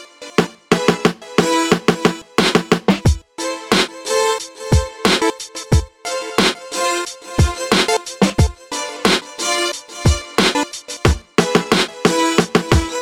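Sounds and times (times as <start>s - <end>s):
music beat: 0.4s - 13.0s.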